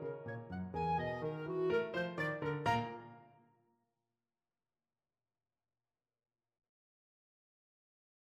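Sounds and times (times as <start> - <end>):
clear piano piece: 0.0 - 3.4.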